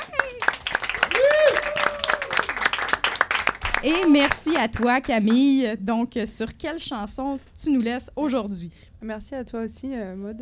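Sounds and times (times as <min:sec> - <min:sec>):
people whooping and cheering: 0:00.0 - 0:02.8
audience clapping: 0:00.0 - 0:05.5
speech: 0:03.8 - 0:10.4.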